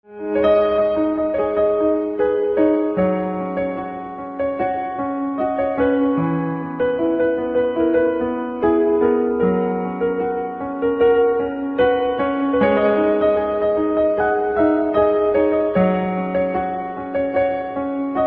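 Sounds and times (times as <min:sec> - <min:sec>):
piano: 0:00.0 - 0:18.2.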